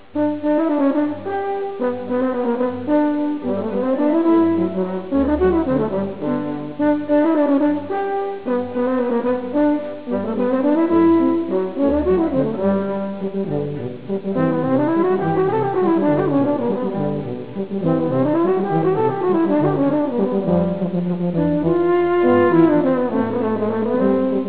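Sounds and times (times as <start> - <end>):
brassy horn: 0.0 - 24.4.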